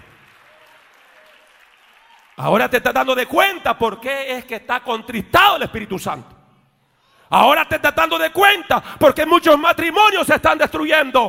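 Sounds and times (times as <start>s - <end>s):
weak audience applause: 0.0s - 3.0s
speech: 2.4s - 6.4s, 7.3s - 11.2s.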